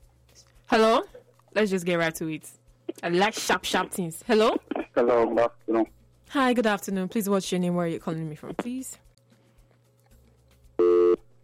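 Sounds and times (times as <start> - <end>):
speech: 1.6 - 9.0
telephone busy signal after a caller's line drops: 10.8 - 11.2.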